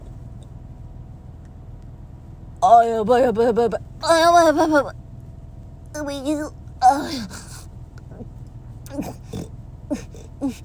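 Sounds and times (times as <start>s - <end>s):
speech: 2.6s - 5.0s, 6.0s - 7.4s, 8.9s - 9.2s, 9.9s - 10.6s
pigs grunting and oinking: 8.9s - 10.6s.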